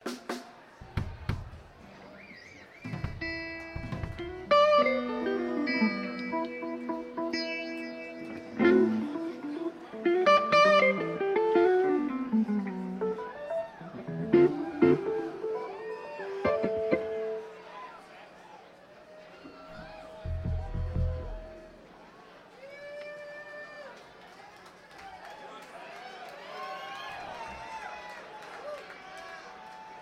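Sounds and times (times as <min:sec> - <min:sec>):
instrument tuning: 0:03.6 - 0:17.6, 0:20.2 - 0:21.8.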